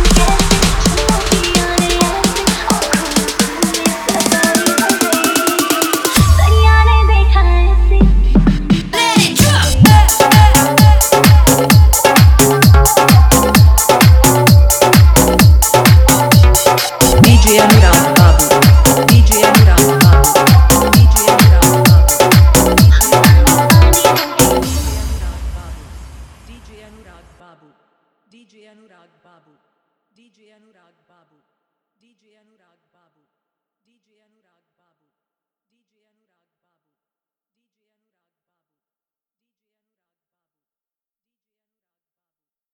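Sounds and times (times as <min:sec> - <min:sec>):
full electronic bass club dance remix: 0:00.0 - 0:27.4.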